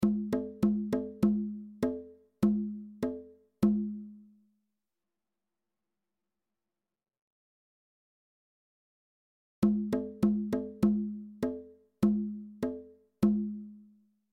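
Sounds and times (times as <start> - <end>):
bongos: 0.0 - 4.3, 9.6 - 13.9.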